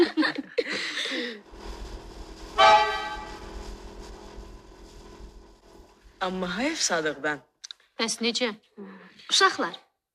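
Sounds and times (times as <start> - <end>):
laughter: 0.0 - 1.4
car horn honking: 2.6 - 3.4
speech: 6.2 - 9.8.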